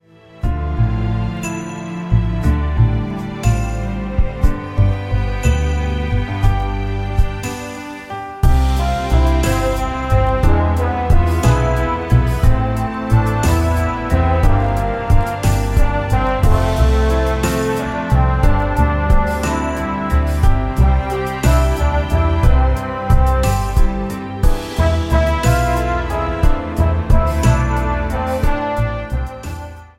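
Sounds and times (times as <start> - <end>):
Christmas atmosphere: 0.2 - 29.7.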